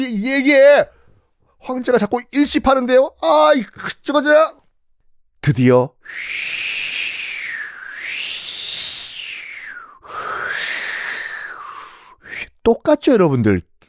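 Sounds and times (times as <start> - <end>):
speech: 0.0 - 1.0, 1.6 - 4.6, 5.4 - 7.0, 12.6 - 13.7
lip-made whistle imitating winter wind: 6.0 - 12.5.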